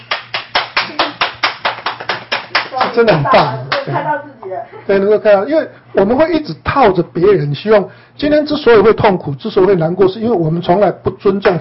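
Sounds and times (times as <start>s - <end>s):
hand clapping: 0.0s - 4.0s
speech: 3.0s - 11.5s.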